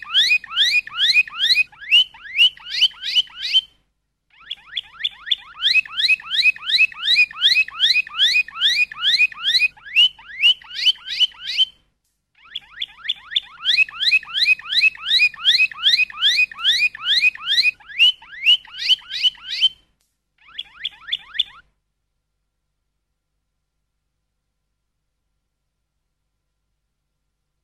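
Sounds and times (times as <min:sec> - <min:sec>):
Waterslager canary song: 0:00.0 - 0:11.8, 0:12.4 - 0:19.8, 0:20.4 - 0:21.7.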